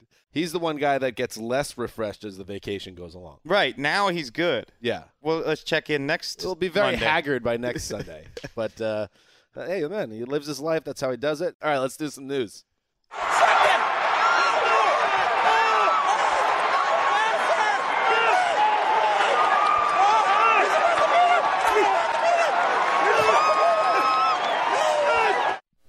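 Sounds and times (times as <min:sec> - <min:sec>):
speech: 0:00.4 - 0:13.4
crowd cheering at horse race finish: 0:13.1 - 0:25.6.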